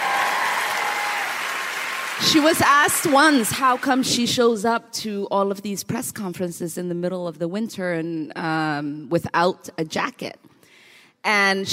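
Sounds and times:
audience clapping: 0.0 - 4.2
speech: 2.2 - 10.5, 11.2 - 11.7.

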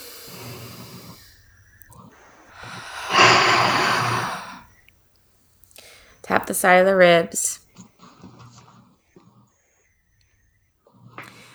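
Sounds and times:
deep breath: 0.0 - 4.8
speech: 6.3 - 7.5.

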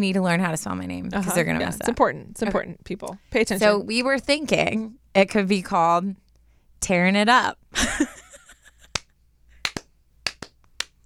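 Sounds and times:
speech: 0.0 - 6.2, 6.8 - 8.2
two people slow clapping: 8.9 - 11.0.

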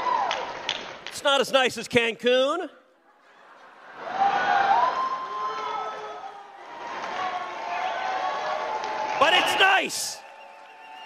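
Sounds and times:
speech: 1.2 - 2.8, 9.8 - 10.2
crowd booing: 3.8 - 11.0.

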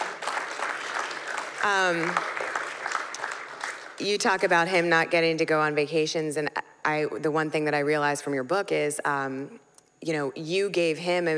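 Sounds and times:
audience clapping: 0.0 - 4.4
speech: 1.6 - 2.4, 4.0 - 11.3.

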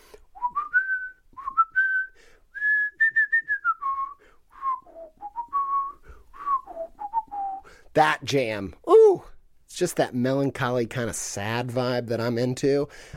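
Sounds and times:
person whistling a video game tune: 0.4 - 7.7
speech: 8.0 - 8.9, 9.8 - 13.1.

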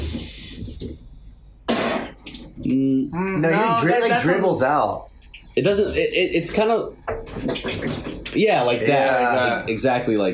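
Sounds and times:
voice imitating vomiting that sounds like a running sink: 1.7 - 3.7
speech: 2.6 - 10.3.

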